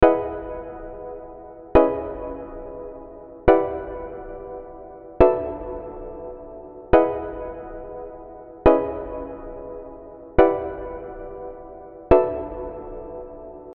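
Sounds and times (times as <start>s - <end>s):
piano: 0.0s - 13.7s.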